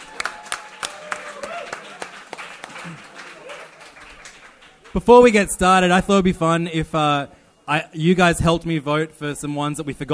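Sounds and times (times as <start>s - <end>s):
round of applause: 0.0s - 5.0s
speech: 5.0s - 10.1s.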